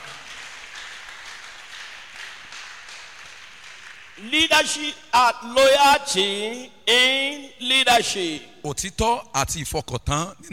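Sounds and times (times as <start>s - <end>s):
audience applause: 0.0s - 4.2s
speech: 4.2s - 10.5s.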